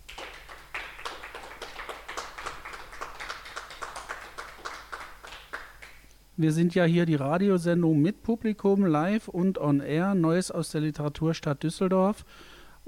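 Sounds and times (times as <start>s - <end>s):
audience applause: 0.0s - 6.0s
speech: 6.4s - 12.8s.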